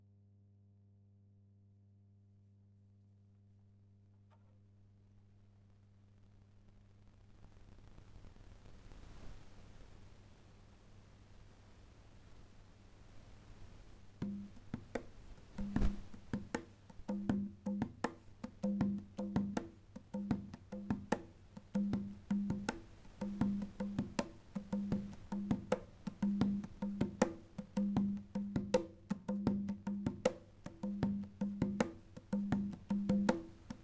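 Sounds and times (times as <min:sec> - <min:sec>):
conga drum: 0:14.2 - 0:33.8.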